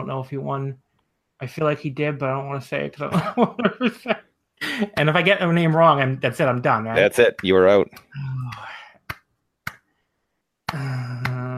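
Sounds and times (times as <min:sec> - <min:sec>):
speech: 0:00.0 - 0:08.7
hands clapping: 0:04.8 - 0:05.4, 0:06.9 - 0:09.9, 0:10.6 - 0:11.5.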